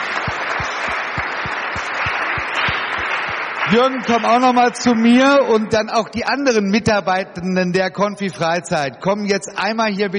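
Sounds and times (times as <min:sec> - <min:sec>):
audience applause: 0:00.0 - 0:05.2
speech: 0:03.7 - 0:10.1.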